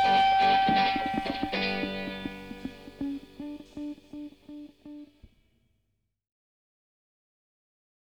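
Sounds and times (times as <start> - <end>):
stereo instrumental music: 0.0 - 5.3.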